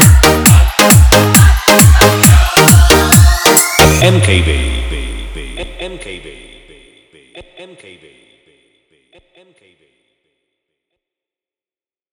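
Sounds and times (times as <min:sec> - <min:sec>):
Hindi remix songs: 0:00.0 - 0:07.0.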